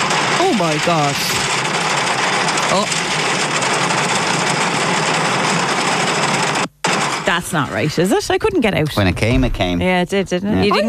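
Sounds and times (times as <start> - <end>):
car engine running: 0.0 - 7.8
speech: 0.6 - 1.5, 2.7 - 3.0, 7.3 - 10.8.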